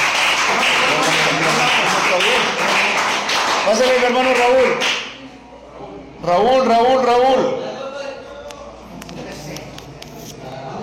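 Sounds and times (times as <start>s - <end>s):
group applause: 0.0s - 5.2s
speech: 3.6s - 4.9s, 6.2s - 7.6s.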